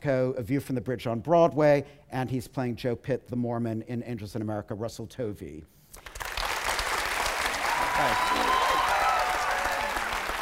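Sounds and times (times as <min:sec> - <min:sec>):
speech: 0:00.0 - 0:05.8, 0:08.0 - 0:08.4
audience applause: 0:06.0 - 0:10.4.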